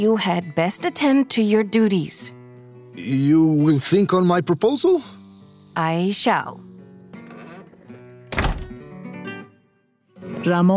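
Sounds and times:
speech: 0.0s - 2.4s, 3.0s - 5.2s, 5.8s - 6.7s, 10.4s - 10.7s
door shutting: 8.3s - 8.9s.

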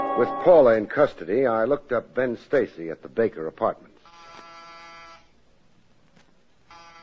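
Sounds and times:
speech: 0.2s - 3.9s
apartment door buzzer ringing: 4.0s - 5.3s, 6.7s - 7.0s.

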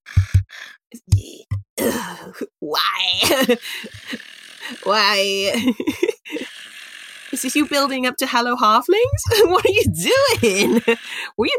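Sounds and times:
heavy breathing: 0.1s - 1.5s, 3.6s - 4.9s, 5.7s - 7.0s, 10.1s - 11.4s
speech: 1.8s - 6.1s, 7.4s - 11.5s
laughter: 3.2s - 6.5s, 9.1s - 11.3s.

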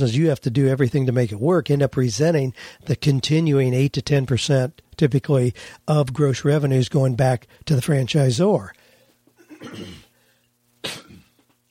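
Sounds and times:
speech: 0.0s - 8.8s, 9.6s - 10.0s
person's coughing fit from choking: 9.4s - 10.2s, 10.8s - 11.5s.

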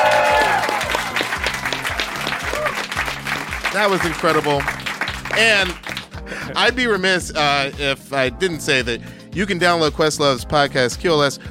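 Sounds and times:
audience applauding: 0.0s - 6.3s
speech: 3.8s - 4.8s, 5.4s - 11.4s.

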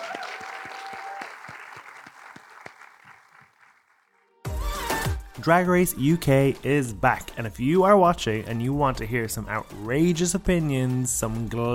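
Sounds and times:
crowd applauding: 0.0s - 4.4s
speech: 5.4s - 11.7s.

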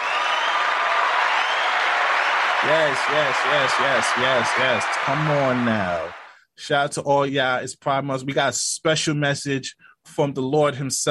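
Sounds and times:
applause: 0.0s - 6.4s
speech: 2.6s - 11.1s.

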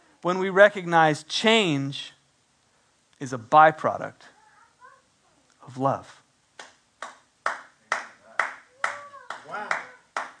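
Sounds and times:
speech: 0.2s - 2.2s, 3.2s - 4.3s, 5.7s - 6.2s
hand claps from on-screen video: 6.6s - 10.3s.

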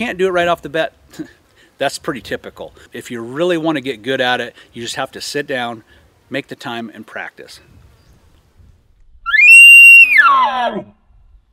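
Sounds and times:
speech: 0.0s - 7.8s, 10.2s - 11.0s
elk bugle blown on a diaphragm call: 9.3s - 10.8s.

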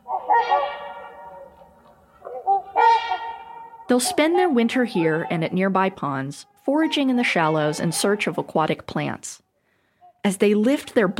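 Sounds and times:
Trumpeter Swan honking: 0.0s - 8.8s
speech: 3.9s - 9.4s, 10.2s - 11.1s.

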